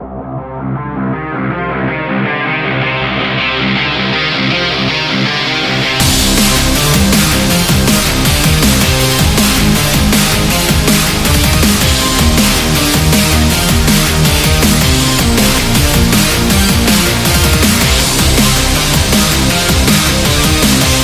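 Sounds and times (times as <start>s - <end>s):
rock music: 0.0s - 21.0s.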